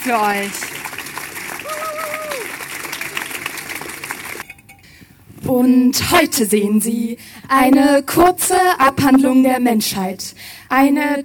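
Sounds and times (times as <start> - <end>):
speech: 0.0 - 0.8, 5.4 - 11.2
audience applause: 0.0 - 4.4
high whistle or cheer: 1.6 - 2.6.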